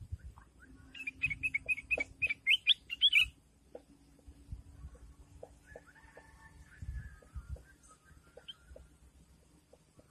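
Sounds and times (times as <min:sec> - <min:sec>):
Sooty-headed bulbul giving short bright chirpy phrases: 0:00.1 - 0:03.4, 0:07.6 - 0:08.9.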